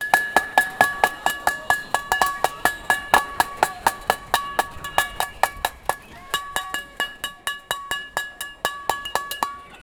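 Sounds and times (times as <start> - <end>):
realistic festive sound: 0.0 - 9.8.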